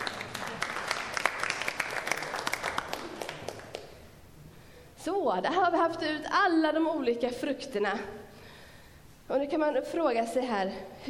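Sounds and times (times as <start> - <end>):
applause: 0.0 - 4.0
speech: 5.0 - 8.2, 9.3 - 11.0.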